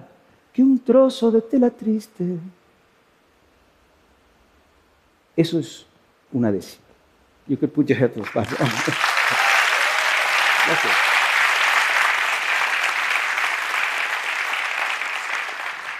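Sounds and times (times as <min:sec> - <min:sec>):
speech: 0:00.6 - 0:02.6, 0:05.4 - 0:06.8, 0:07.5 - 0:09.1
audience applause: 0:08.2 - 0:15.9
laughter: 0:08.4 - 0:09.8.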